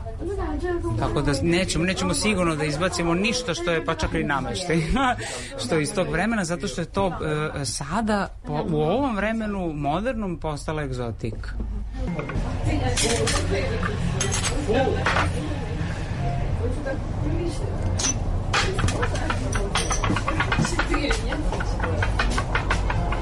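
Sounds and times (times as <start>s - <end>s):
low noise: 0.0s - 23.1s
speech: 0.6s - 15.6s, 16.6s - 18.2s
glass laboratory bottles clinking in a shop: 18.0s - 23.1s.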